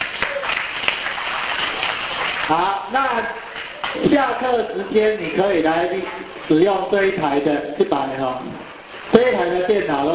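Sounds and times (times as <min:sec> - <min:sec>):
students clapping in a classroom: 0:00.0 - 0:02.5
speech: 0:02.5 - 0:10.1.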